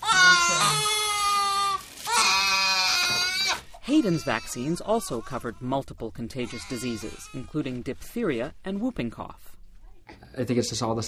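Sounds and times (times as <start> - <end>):
young child wailing during vaccination: 0.0 - 5.2
speech: 3.9 - 11.0.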